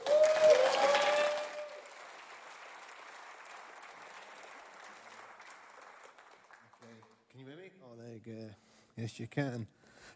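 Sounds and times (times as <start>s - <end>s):
church congregation applauding to welcome a speaker: 0.0s - 7.3s
speech: 8.2s - 10.1s.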